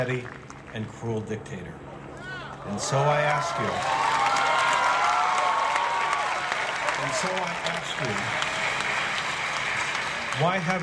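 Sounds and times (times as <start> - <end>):
speech: 0.0 - 1.9, 2.6 - 4.2, 7.0 - 8.6, 10.4 - 10.8
crowd cheering and applauding: 2.5 - 10.8.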